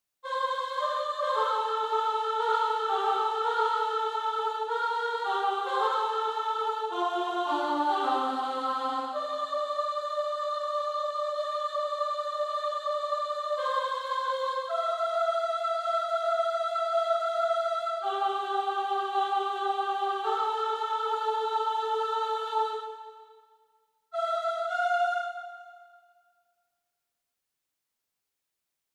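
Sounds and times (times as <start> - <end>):
soprano singing: 0.3 - 23.3, 24.2 - 25.9.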